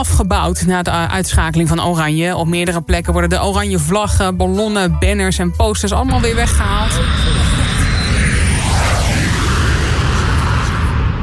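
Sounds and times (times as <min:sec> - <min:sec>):
speech: 0:00.0 - 0:07.6
Boeing 737 airliner passing overhead: 0:06.2 - 0:11.2.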